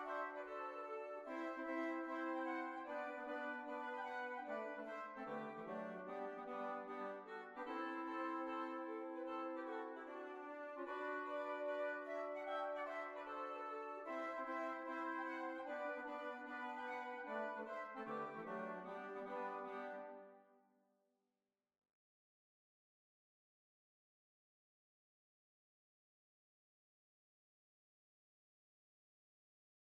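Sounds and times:
hornpipe folk tune: 0.0s - 20.4s.

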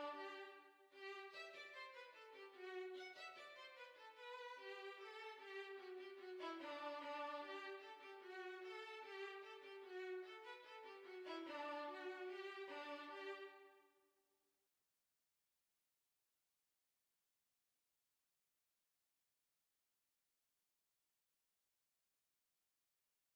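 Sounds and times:
violin: 0.0s - 13.8s.

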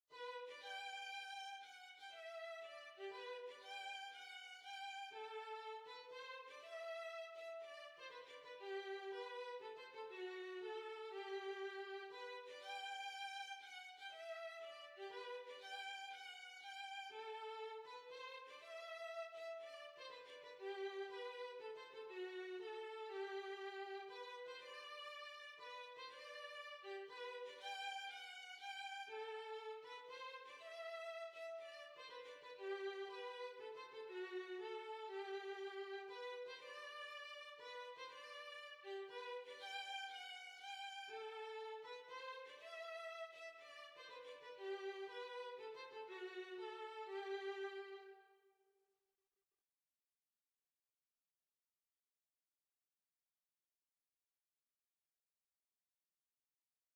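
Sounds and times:
violin: 0.0s - 48.4s.

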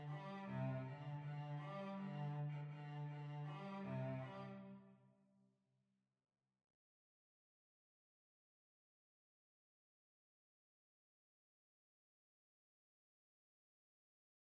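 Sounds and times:
hornpipe on violoncello: 0.0s - 4.9s.

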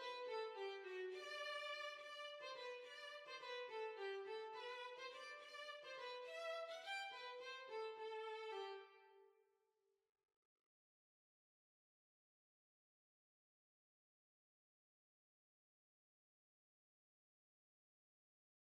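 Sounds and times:
violin: 0.0s - 9.2s.

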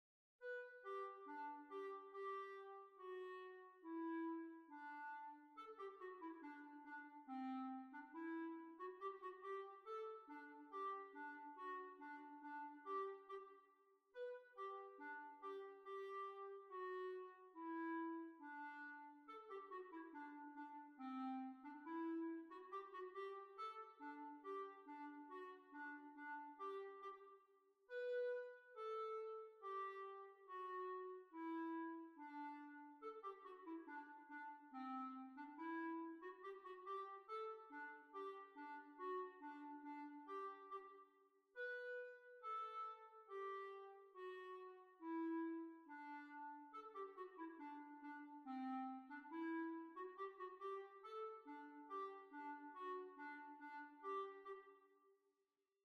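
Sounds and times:
hornpipe tune: 0.4s - 54.9s.

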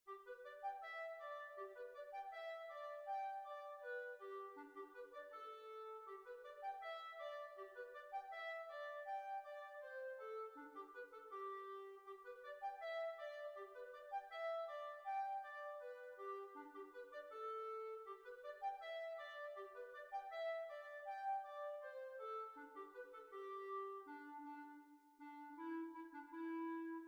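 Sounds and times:
hornpipe tune in B flat: 0.1s - 27.0s.

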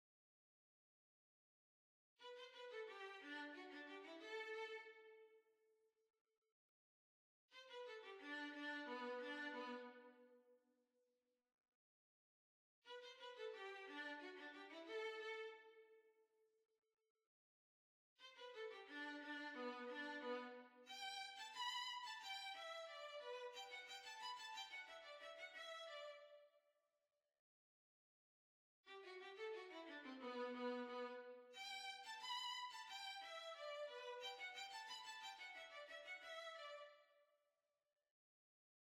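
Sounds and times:
violin: 2.2s - 5.2s, 7.6s - 10.2s, 12.9s - 15.8s, 18.2s - 26.4s, 28.9s - 37.0s.

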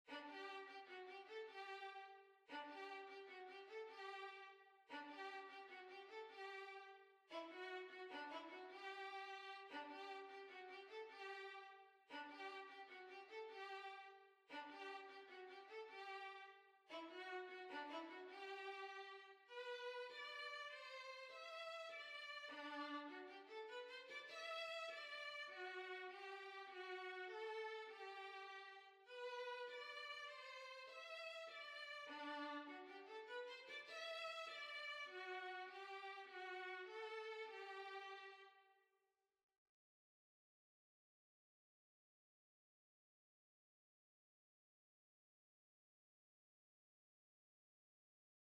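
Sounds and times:
violin: 0.0s - 38.6s.

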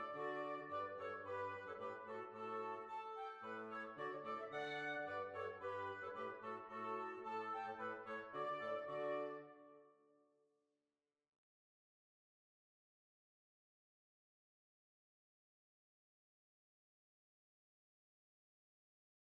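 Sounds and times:
heel and toe polka music: 0.0s - 9.4s.

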